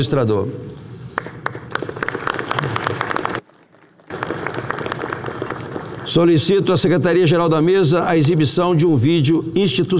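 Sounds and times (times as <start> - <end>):
speech: 0.0 - 0.9, 6.1 - 9.9
audience applause: 1.2 - 6.2.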